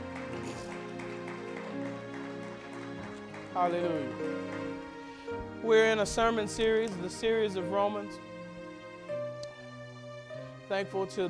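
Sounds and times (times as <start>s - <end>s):
audience hand clapping: 0.0s - 5.5s
speech: 3.6s - 4.6s, 5.6s - 8.3s, 10.7s - 11.2s.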